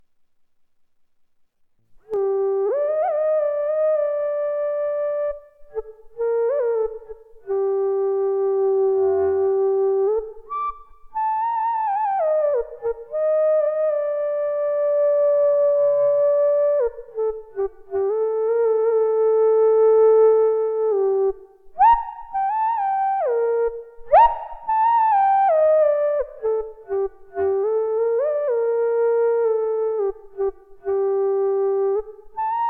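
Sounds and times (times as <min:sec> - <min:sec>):
zen flute: 0:02.1 - 0:32.6.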